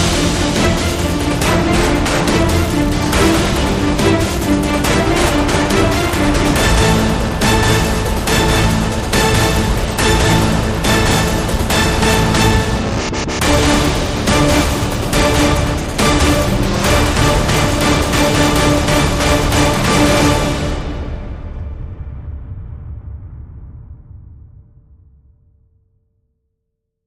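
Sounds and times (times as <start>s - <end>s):
music without lead horns: 0.0s - 21.5s.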